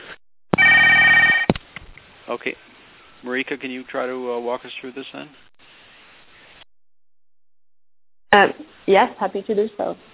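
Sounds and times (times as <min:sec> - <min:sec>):
telephone ringing: 0:00.6 - 0:01.5
speech: 0:02.3 - 0:05.5, 0:08.3 - 0:10.1.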